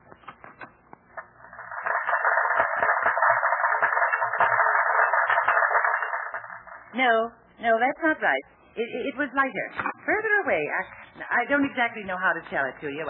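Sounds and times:
crowd applauding played back from a tape recording: 1.5 - 6.9
speech: 7.0 - 13.0.

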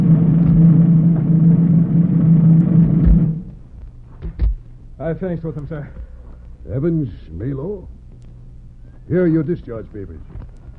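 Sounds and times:
drum roll in a radio drama drumming-out scene: 0.0 - 3.6
speech: 5.1 - 8.0, 9.1 - 10.5.

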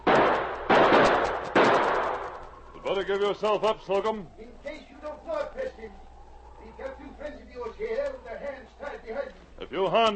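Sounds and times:
gunshots as a sergeant returns fire in a drama: 0.0 - 2.6
speech: 2.9 - 4.7, 9.1 - 10.1.

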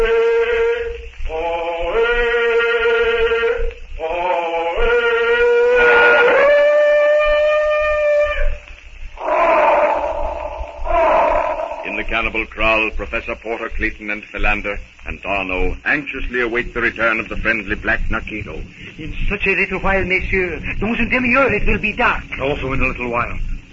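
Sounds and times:
elephant trumpeting: 0.0 - 12.3
speech: 12.3 - 23.5.

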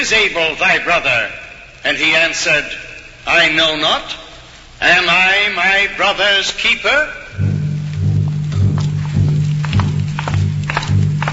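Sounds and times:
speech: 0.0 - 4.2, 4.8 - 7.5
low constant rumble: 7.3 - 11.3
footsteps walking together: 7.4 - 11.3.

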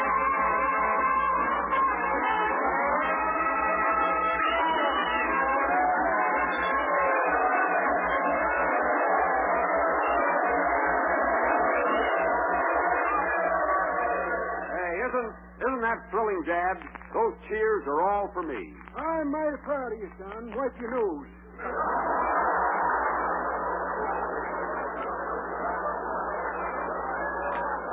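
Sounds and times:
firehouse brass band playing: 0.0 - 10.2
low hum: 0.1 - 27.9
laughter: 1.7 - 14.8, 21.6 - 27.9
speech: 16.0 - 22.0.

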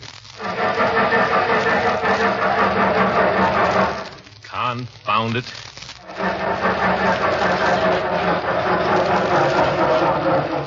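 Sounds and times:
car engine cranking without catching: 0.5 - 4.2, 6.0 - 10.6
speech: 4.7 - 5.7.

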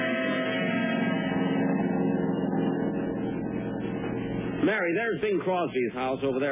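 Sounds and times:
car being driven, radio drama sound effect: 0.2 - 4.6
speech: 4.9 - 6.5.

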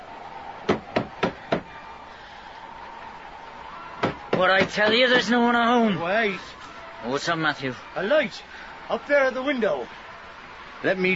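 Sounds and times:
firm knocks on a wooden door: 4.0 - 5.0
speech: 4.4 - 10.0, 10.8 - 11.1.

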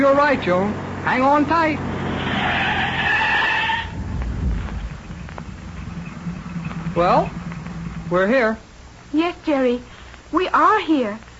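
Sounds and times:
speech: 0.0 - 2.6, 7.0 - 7.4, 8.1 - 11.3
car skidding across the road: 0.1 - 8.2.

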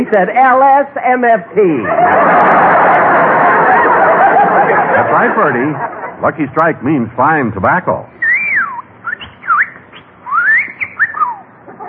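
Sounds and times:
speech: 0.0 - 3.0, 3.6 - 8.2
laughter: 1.8 - 6.7, 11.6 - 11.8
hiss: 4.0 - 11.8
talking bird whistling: 8.2 - 11.6.

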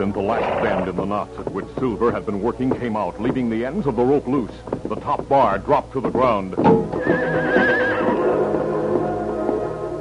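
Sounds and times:
speech: 0.0 - 7.8
hooves shifting: 0.0 - 10.0
stallion neighing loudly: 0.3 - 0.9, 7.0 - 8.4
stallion snorting and rumbling: 0.3 - 1.0.

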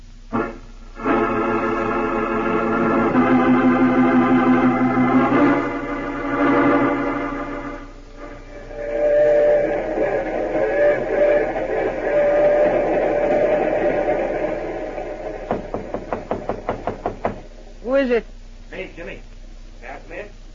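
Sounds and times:
steady hum: 0.0 - 20.5
knocking on a compartment door: 15.5 - 17.5.

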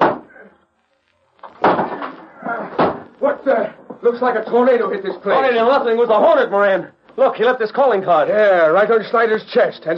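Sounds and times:
heavy door smashed open: 1.5 - 3.1
speech: 3.2 - 9.9.

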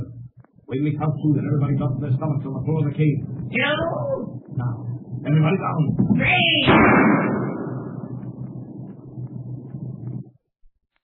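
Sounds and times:
speech: 0.7 - 7.5
gunshot in a cave in a radio drama: 6.7 - 8.3.

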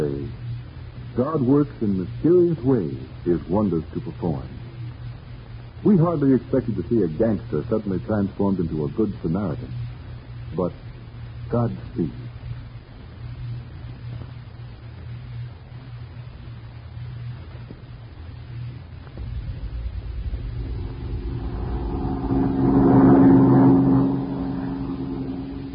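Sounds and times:
airplane engine droning: 0.0 - 25.7
speech: 1.2 - 4.6, 5.8 - 9.8, 10.5 - 10.8, 11.5 - 12.2.

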